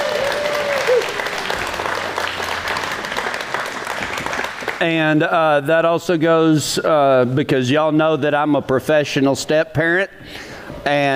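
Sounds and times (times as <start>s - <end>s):
applause: 0.0s - 5.0s
speech: 4.8s - 11.1s.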